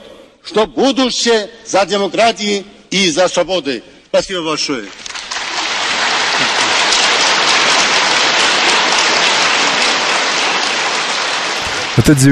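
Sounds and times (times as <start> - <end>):
speech: 0.5 - 5.1, 12.0 - 12.3
large crowd standing ovation applause: 4.9 - 12.3.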